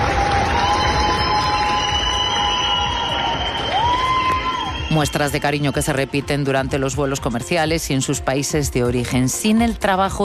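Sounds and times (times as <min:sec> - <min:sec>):
large crowd ovation at an airport: 0:00.0 - 0:06.1
long high whistles: 0:00.6 - 0:05.4
speech: 0:05.0 - 0:10.2.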